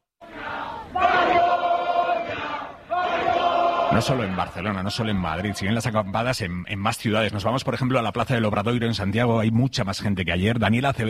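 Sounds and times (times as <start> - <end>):
protest crowd shouting chants: 0.2 - 5.8
speech: 3.9 - 11.0.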